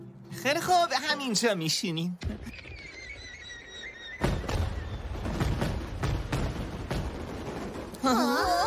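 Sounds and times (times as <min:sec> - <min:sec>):
speech: 0:00.4 - 0:02.4
fireworks exploding: 0:04.2 - 0:08.6.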